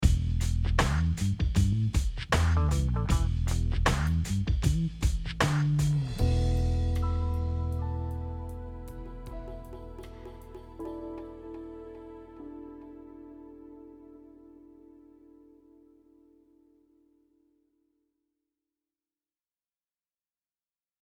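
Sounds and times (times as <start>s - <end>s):
funk music: 0.0s - 15.0s.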